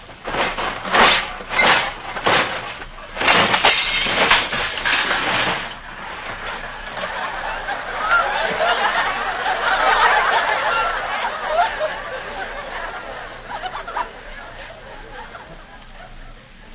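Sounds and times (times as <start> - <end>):
man tripping on a toy train and crashing: 0.0 - 7.9
laughter: 6.3 - 16.6.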